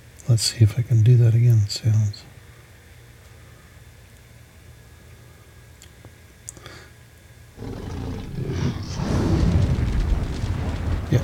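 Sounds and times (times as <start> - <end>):
speech: 0.3 - 2.3
fire-breathing dragon sound effect: 7.6 - 11.2.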